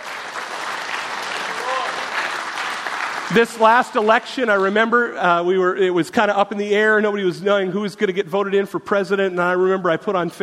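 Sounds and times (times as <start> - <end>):
audience clapping: 0.0 - 5.0
speech: 3.3 - 10.4.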